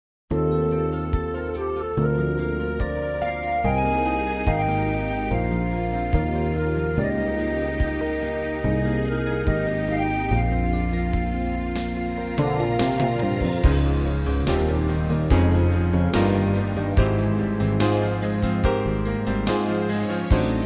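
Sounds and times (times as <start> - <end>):
easy listening and classical music: 0.4 - 20.6.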